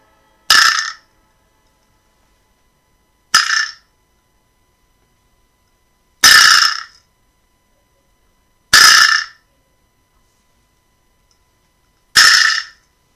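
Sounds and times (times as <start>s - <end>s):
vibraslap percussion instrument rattle: 0.5s - 1.0s, 3.3s - 3.8s, 6.2s - 7.0s, 8.7s - 9.4s, 12.2s - 12.8s.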